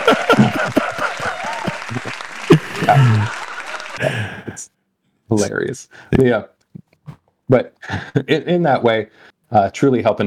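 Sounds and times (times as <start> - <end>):
short burst of applause from a small group: 0.0 - 4.0
laughter: 0.0 - 4.5, 7.8 - 8.4
speech: 5.3 - 6.6, 7.5 - 10.2.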